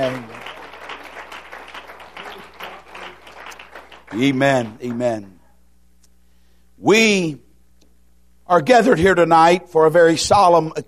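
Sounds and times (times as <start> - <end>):
speech: 0.0 - 0.4, 4.1 - 5.3, 6.8 - 7.4, 8.5 - 10.8
audience clapping: 0.0 - 5.3.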